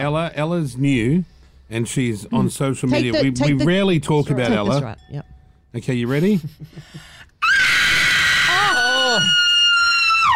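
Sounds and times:
speech: 0.0s - 7.3s, 9.1s - 9.4s
high-pitched scream trying to shatter glass: 7.4s - 10.3s.

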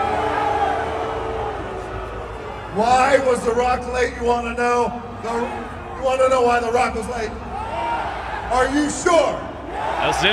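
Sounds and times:
wrestling arena crowd booing The Rock: 0.0s - 3.2s, 7.4s - 10.3s
speech: 2.8s - 7.5s, 8.5s - 9.4s, 10.0s - 10.3s.

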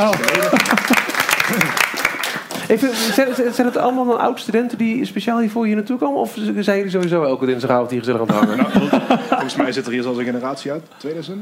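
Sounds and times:
speech: 0.0s - 1.8s, 2.7s - 11.4s
audience applause: 0.0s - 3.1s.

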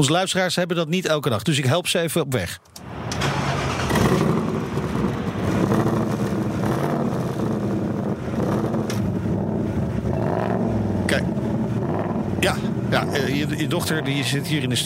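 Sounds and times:
speech: 0.0s - 2.9s, 12.4s - 14.8s
Ford Mustang engine: 2.7s - 14.8s.

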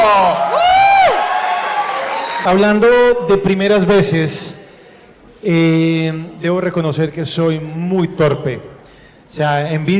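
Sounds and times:
audience applause and cheering: 0.0s - 2.6s
speech: 2.4s - 4.6s, 5.4s - 8.7s, 9.3s - 9.9s.

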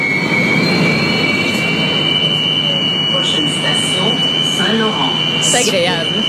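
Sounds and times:
Montreal metro Azur train high-pitched electric whining: 0.0s - 6.2s
Montreal metro Azur train rising squeals: 0.0s - 6.2s
Montreal metro Azur train roar: 0.0s - 6.2s.

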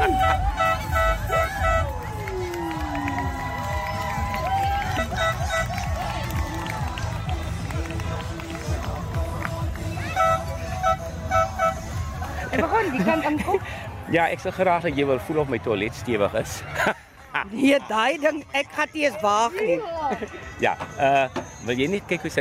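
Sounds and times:
homemade horn blaring like a ship's foghorn: 0.0s - 2.3s, 4.8s - 6.1s, 10.0s - 12.2s
crowd chatter: 0.0s - 22.3s
laughter: 12.3s - 13.8s, 16.5s - 17.6s
speech: 14.1s - 22.3s.

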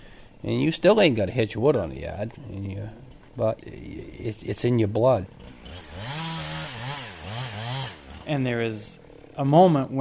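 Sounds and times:
speech: 0.4s - 6.2s, 8.3s - 10.0s
chainsaw running: 5.3s - 9.5s.

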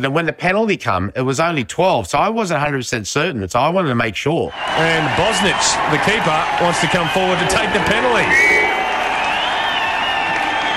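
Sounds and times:
speech: 0.0s - 8.5s
stadium crowd cheering: 4.5s - 10.7s.

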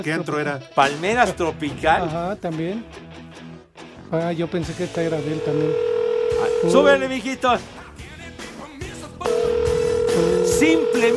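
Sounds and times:
speech: 0.0s - 3.2s, 4.1s - 7.8s, 10.2s - 11.1s
telephone ringing with an incoming call: 5.2s - 7.1s, 9.3s - 11.1s.

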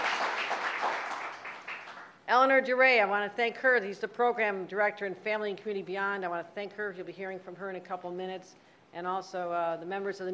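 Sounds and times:
audience applause: 0.0s - 2.1s
speech: 2.3s - 10.3s.

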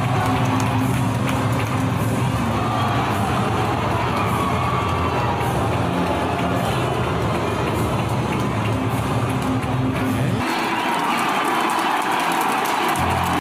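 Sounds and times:
arena crowd cheering: 0.0s - 13.3s.

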